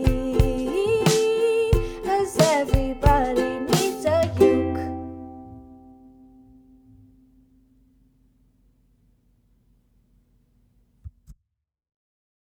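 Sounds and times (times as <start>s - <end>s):
ukulele: 0.0s - 7.4s.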